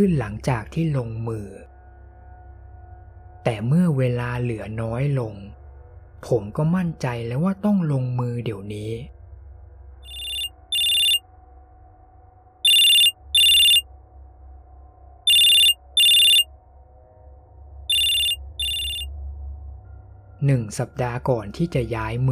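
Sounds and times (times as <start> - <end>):
speech: 0.0 - 1.7, 3.4 - 5.6, 6.2 - 9.2, 20.4 - 22.3
phone ringing with an incoming call: 10.1 - 11.2, 12.7 - 13.8, 15.3 - 16.5, 17.9 - 19.1.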